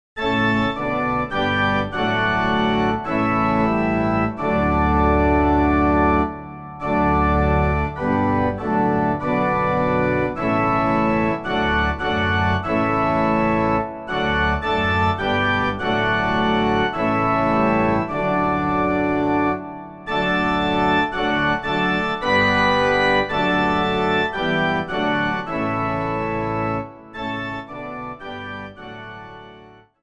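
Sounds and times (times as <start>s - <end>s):
instrumental music: 0.2s - 30.0s.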